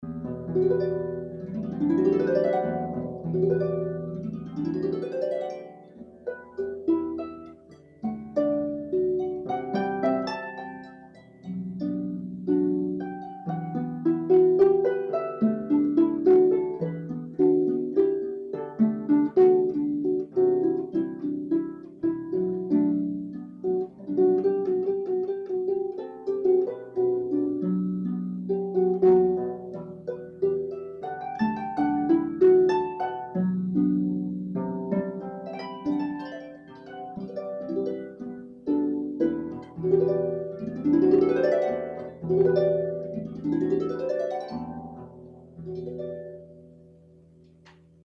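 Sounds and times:
harp: 0.0 - 48.0.

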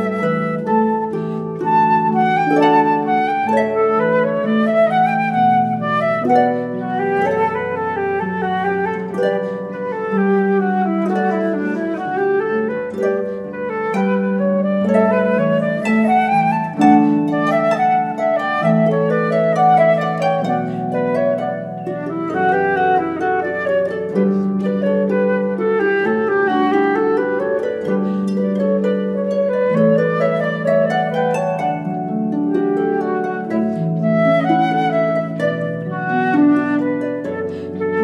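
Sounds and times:
flute playing: 0.0 - 38.0.

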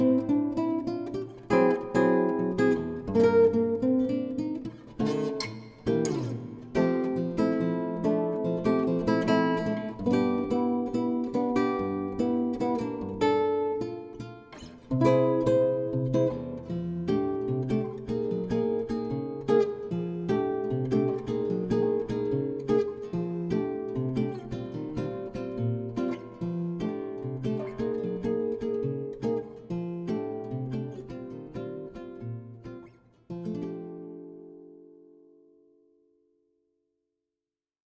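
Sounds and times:
guitar piece: 0.0 - 36.4.

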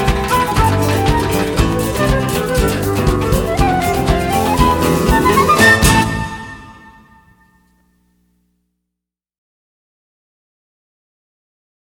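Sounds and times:
classical guitar: 0.0 - 7.6.

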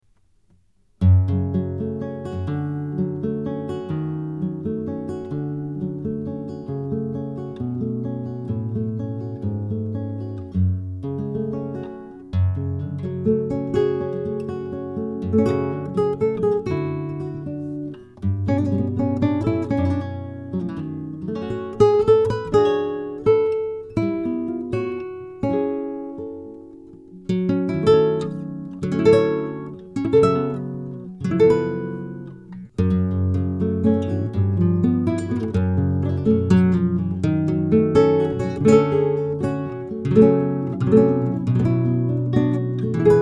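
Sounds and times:
flamenco Spanish guitar duo: 1.0 - 43.2.

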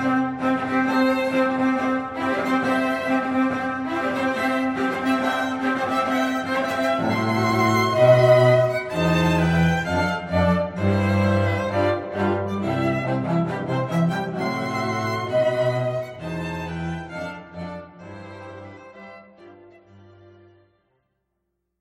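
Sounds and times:
string quartet playing classical wedding music: 0.0 - 20.7.

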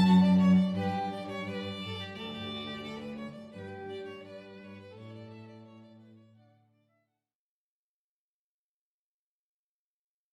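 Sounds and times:
string trio playing a baroque canon: 0.0 - 6.7.

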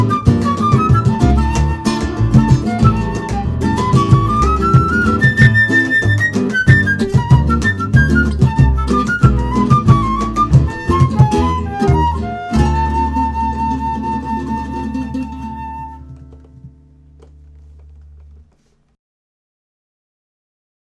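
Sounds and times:
flute in a Latin ensemble: 0.0 - 16.7
Latin ensemble playing: 0.0 - 16.8.

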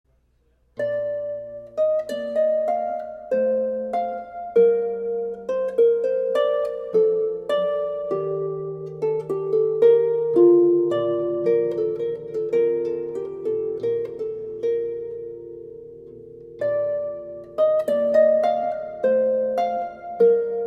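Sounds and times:
harp: 0.6 - 20.6.

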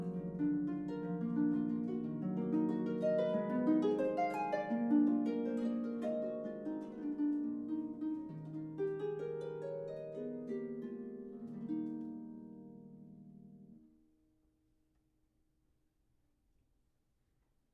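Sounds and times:
solo classical harp: 0.0 - 14.0.

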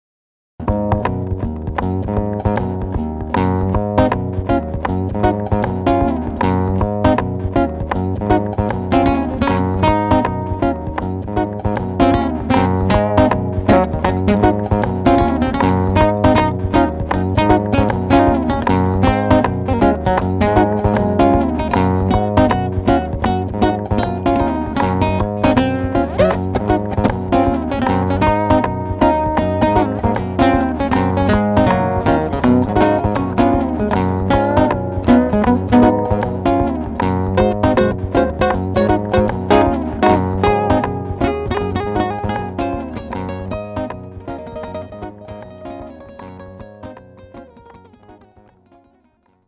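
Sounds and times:
solo fingerstyle guitar: 0.6 - 49.4.

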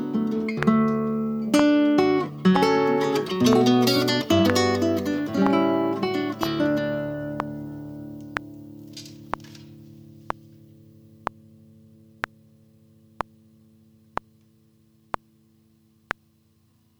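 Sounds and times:
flamenco guitar: 0.0 - 9.7.

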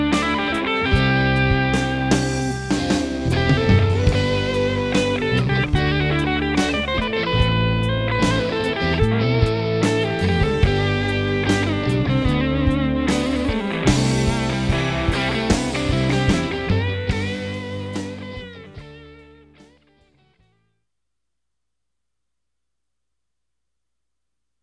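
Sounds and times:
cover band playing: 0.0 - 19.6.

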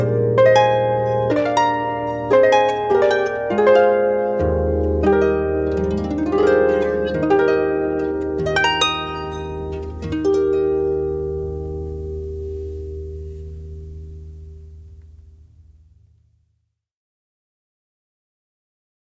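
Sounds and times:
harp playing processional: 0.0 - 15.8.

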